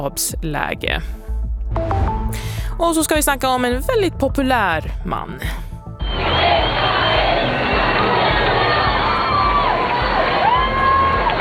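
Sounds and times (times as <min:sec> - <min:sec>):
speech: 0:00.0 - 0:05.6
crowds cheering the pope's arrival: 0:06.0 - 0:11.4.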